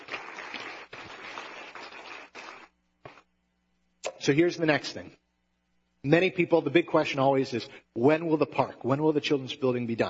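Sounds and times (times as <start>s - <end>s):
audience clapping: 0.0s - 3.3s
speech: 4.2s - 5.2s, 6.0s - 10.0s.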